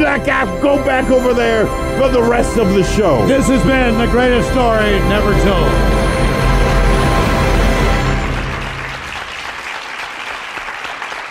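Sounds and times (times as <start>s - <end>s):
speech: 0.2s - 6.0s
crowd applauding: 6.4s - 11.2s.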